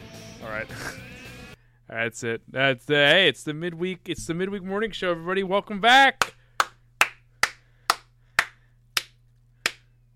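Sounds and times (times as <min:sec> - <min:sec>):
speech: 0:00.4 - 0:01.1, 0:01.9 - 0:06.4
one person clapping: 0:06.2 - 0:09.9.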